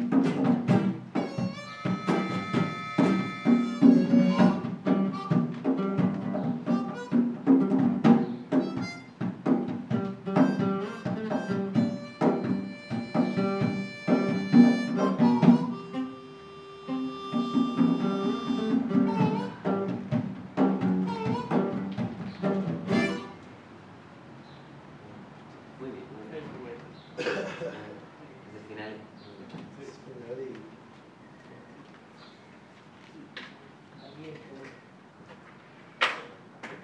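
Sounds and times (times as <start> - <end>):
drums: 0.0 - 23.5.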